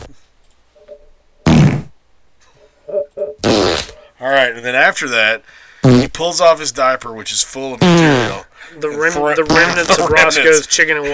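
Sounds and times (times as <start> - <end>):
voice imitating a wet fart: 1.4 - 1.9, 3.4 - 4.0, 5.8 - 6.2, 7.8 - 8.5, 9.5 - 10.1
speech: 4.2 - 11.1.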